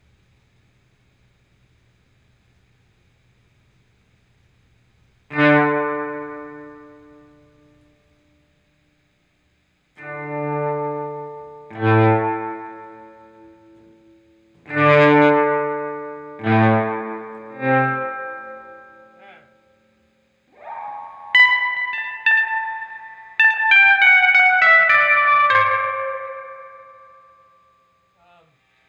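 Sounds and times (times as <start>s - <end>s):
guitar volume swell: 10.0s - 14.0s, 14.7s - 19.6s, 20.5s - 27.6s.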